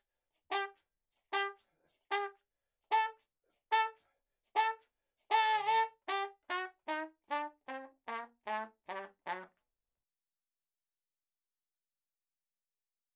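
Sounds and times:
ragtime trumpet in a room: 0.5s - 9.6s.

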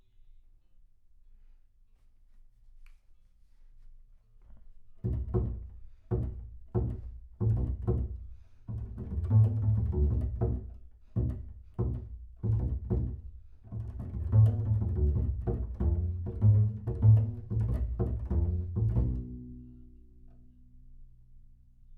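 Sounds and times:
bass sound: 5.0s - 20.0s.

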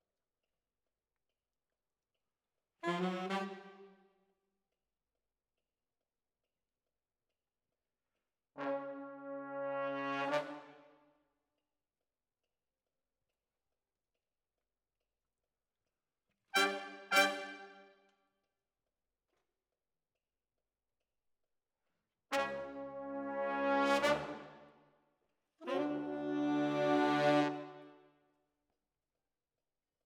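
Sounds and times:
brass instruments: 2.8s - 3.9s, 8.6s - 11.0s, 16.6s - 17.9s, 22.3s - 24.8s, 25.6s - 28.0s.

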